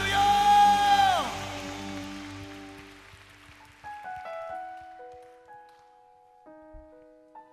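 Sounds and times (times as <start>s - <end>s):
audience applauding: 0.0s - 5.8s.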